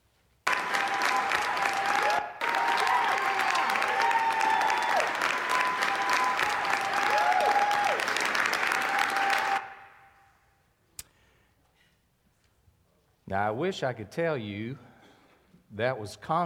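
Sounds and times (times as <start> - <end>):
people applauding in a video clip: 0.4 - 10.0
speech: 13.3 - 14.9, 15.8 - 16.4.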